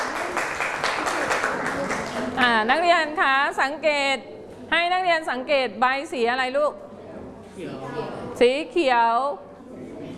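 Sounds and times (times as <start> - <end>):
students clapping in a classroom: 0.0 - 2.3
speech: 2.4 - 6.8, 7.6 - 9.5.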